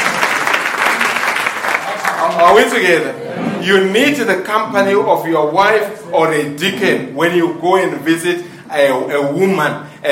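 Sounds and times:
audience clapping hands: 0.0 - 3.0
speech: 2.3 - 10.1.

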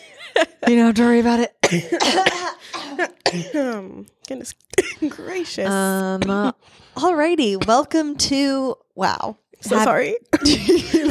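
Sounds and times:
speech: 0.4 - 11.1
harsh coughing: 1.6 - 3.7, 10.3 - 11.1.

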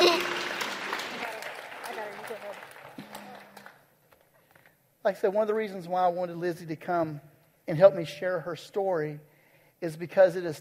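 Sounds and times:
audience applause: 0.0 - 3.8
speech: 5.0 - 10.5.

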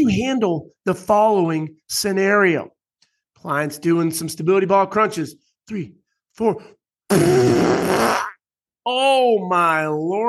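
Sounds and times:
speech: 0.0 - 2.8, 3.4 - 8.1, 8.8 - 10.2
fart: 7.1 - 8.4.

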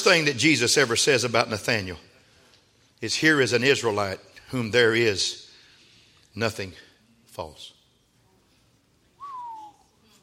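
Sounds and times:
speech: 0.0 - 2.1, 3.0 - 5.4, 6.4 - 6.8, 7.4 - 7.8
person whistling in the pulpit: 9.2 - 10.0.

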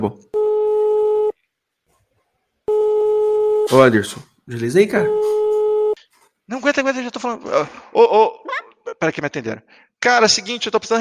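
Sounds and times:
speech: 0.0 - 0.3, 3.7 - 5.4, 6.5 - 10.9
telephone line tone while calling tech support: 0.4 - 1.4, 2.7 - 3.8, 5.0 - 6.0.

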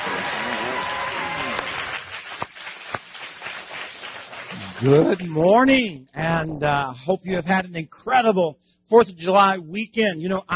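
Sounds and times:
church audience applause and hand clapping: 0.0 - 5.5
speech: 4.8 - 10.5.

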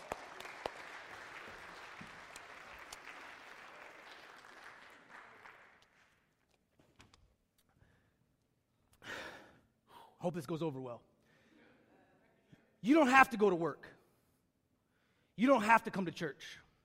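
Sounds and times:
church audience applause: 0.0 - 6.2
speech: 10.2 - 11.1, 12.8 - 14.0, 15.4 - 16.6.

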